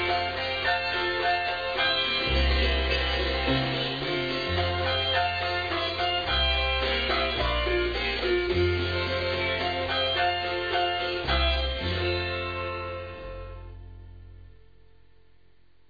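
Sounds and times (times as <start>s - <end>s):
autoharp playing mountain music country blues: 0.0s - 14.5s.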